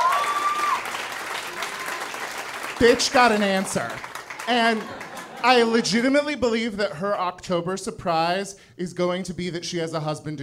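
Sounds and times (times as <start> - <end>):
audience applause: 0.0 - 5.8
speech: 2.8 - 10.4
laughter: 4.4 - 6.2.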